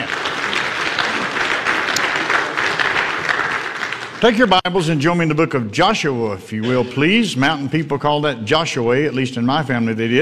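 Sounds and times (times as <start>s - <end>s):
audience clapping hands: 0.0s - 4.7s
speech: 4.2s - 10.2s.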